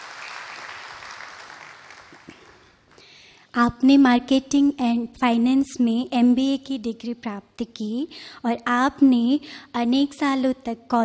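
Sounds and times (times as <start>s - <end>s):
audience applause welcoming a professor: 0.0s - 2.8s
speech: 3.6s - 11.0s.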